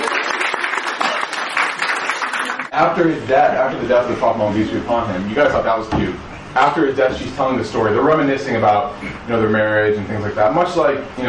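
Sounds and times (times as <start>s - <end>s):
audience applause: 0.0s - 2.8s
speech: 2.8s - 11.2s.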